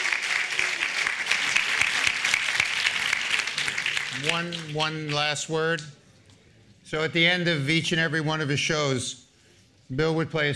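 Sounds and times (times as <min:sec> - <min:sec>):
audience applause for a panel at an event: 0:00.0 - 0:05.2
speech: 0:04.2 - 0:06.0, 0:06.9 - 0:09.2, 0:09.9 - 0:10.5.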